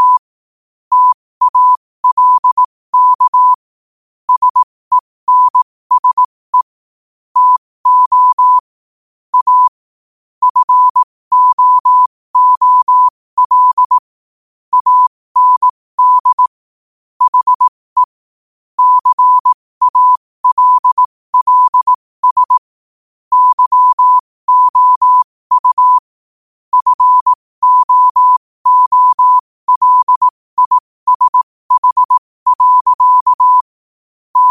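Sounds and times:
morse code at 5 wpm: 0.0s - 0.2s, 0.9s - 3.6s, 4.3s - 6.7s, 7.4s - 8.7s, 9.3s - 9.7s, 10.4s - 14.0s, 14.7s - 16.6s, 17.2s - 18.2s, 18.8s - 22.7s, 23.3s - 26.1s, 26.7s - 33.7s.

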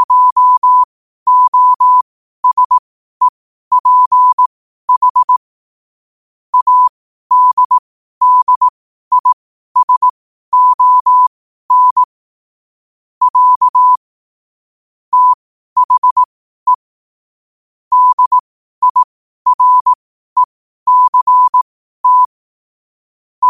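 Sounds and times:
morse code at 5 wpm: 0.0s - 5.4s, 6.6s - 12.1s, 13.2s - 14.0s, 15.1s - 16.8s, 17.9s - 22.4s.

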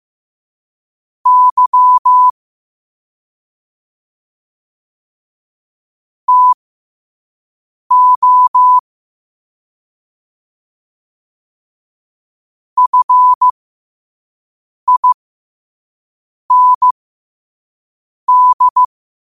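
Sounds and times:
morse code at 5 wpm: 1.3s - 2.3s, 6.3s - 6.6s, 7.9s - 8.8s, 12.8s - 13.5s, 14.9s - 15.2s, 16.5s - 17.0s, 18.3s - 18.9s.

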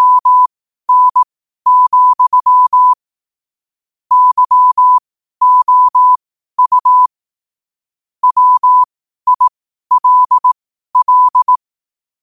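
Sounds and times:
morse code at 5 wpm: 0.0s - 3.0s, 4.1s - 7.1s, 8.2s - 11.6s.

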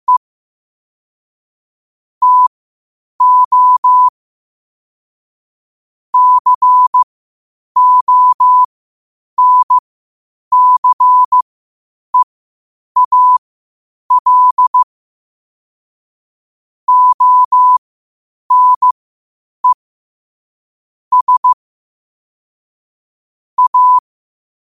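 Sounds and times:
morse code at 5 wpm: 2.2s - 2.5s, 3.2s - 4.1s, 6.2s - 7.0s, 7.8s - 8.7s, 9.4s - 9.8s, 10.5s - 11.4s, 13.0s - 13.4s, 14.1s - 14.8s, 16.9s - 17.8s, 18.5s - 19.0s, 21.1s - 21.6s, 23.6s - 24.0s.

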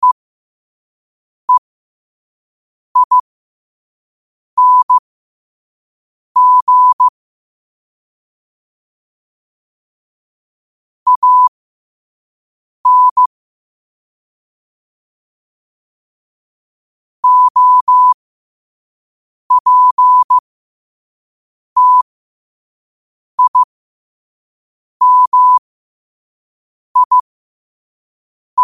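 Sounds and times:
morse code at 5 wpm: 3.0s - 3.2s, 4.6s - 5.0s, 6.4s - 7.1s, 11.1s - 11.5s, 12.9s - 13.3s, 17.2s - 18.2s, 19.5s - 20.4s, 21.8s - 22.1s, 23.4s - 23.7s, 25.0s - 25.6s, 27.0s - 27.2s.

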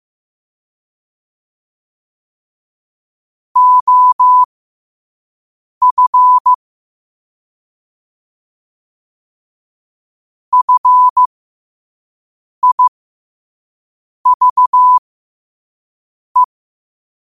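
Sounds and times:
morse code at 5 wpm: 3.6s - 4.5s, 5.8s - 6.6s, 10.5s - 11.3s, 12.6s - 12.9s, 14.3s - 15.0s.

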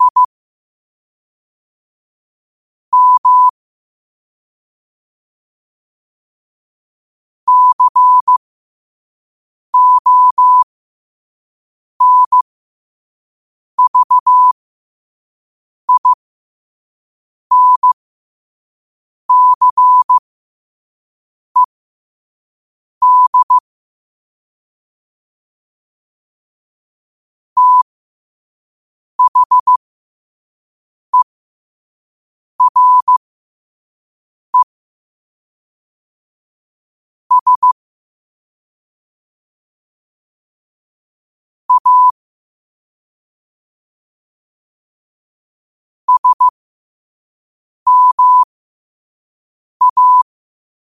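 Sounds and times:
morse code at 5 wpm: 0.0s - 0.3s, 3.0s - 3.5s, 7.5s - 8.4s, 9.8s - 10.6s, 12.0s - 12.4s, 13.8s - 14.6s, 15.9s - 16.2s, 17.5s - 18.0s, 19.3s - 20.2s, 23.0s - 23.6s, 27.6s - 27.9s, 29.2s - 29.8s, 32.6s - 33.2s, 37.3s - 37.8s, 41.7s - 42.2s, 46.1s - 46.5s, 47.9s - 48.5s, 49.8s - 50.3s.

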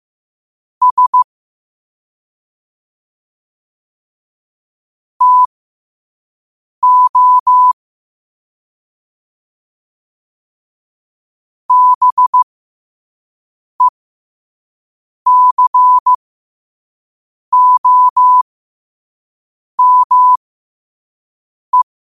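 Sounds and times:
morse code at 5 wpm: 0.8s - 1.3s, 5.2s - 5.5s, 6.8s - 7.8s, 11.7s - 12.4s, 15.3s - 16.1s, 17.6s - 18.4s, 19.8s - 20.4s.

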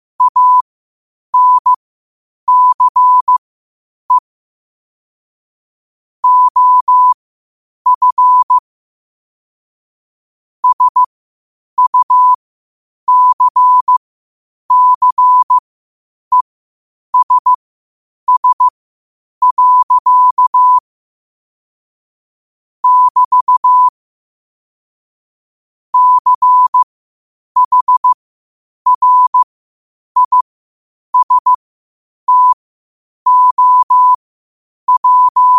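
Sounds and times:
morse code at 5 wpm: 0.2s - 0.6s, 1.4s - 1.8s, 2.5s - 3.4s, 6.2s - 7.2s, 7.9s - 8.6s, 10.6s - 11.1s, 11.8s - 12.4s, 13.1s - 14.0s, 14.7s - 15.6s, 17.2s - 17.6s, 18.3s - 18.7s, 19.4s - 20.8s, 22.8s - 23.9s, 26.0s - 26.9s, 27.6s - 28.2s, 28.9s - 29.5s, 30.2s - 30.4s, 31.2s - 31.6s, 32.3s - 32.6s, 33.3s - 34.2s, 34.9s - 35.5s.

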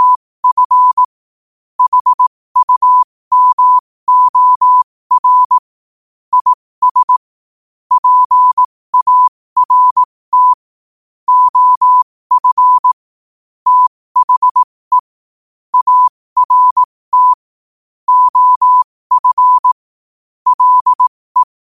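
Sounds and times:
morse code at 5 wpm: 0.0s - 1.1s, 1.8s - 5.6s, 6.3s - 7.2s, 7.9s - 10.6s, 11.3s - 13.0s, 13.7s - 15.1s, 15.7s - 17.4s, 18.1s - 19.8s, 20.5s - 21.6s.

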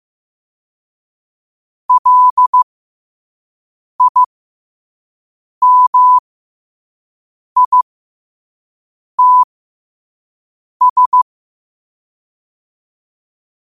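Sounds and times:
morse code at 5 wpm: 1.9s - 2.6s, 4.0s - 4.3s, 5.6s - 6.2s, 7.6s - 7.8s, 9.2s - 9.5s, 10.8s - 11.2s.

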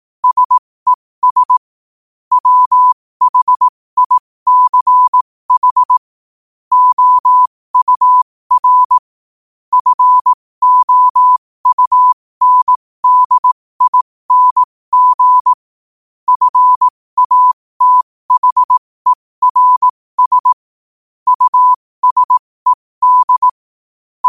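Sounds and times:
morse code at 5 wpm: 0.2s - 0.6s, 1.2s - 1.6s, 2.3s - 6.1s, 6.7s - 9.1s, 9.7s - 15.6s, 16.3s - 20.6s, 21.3s - 23.6s.

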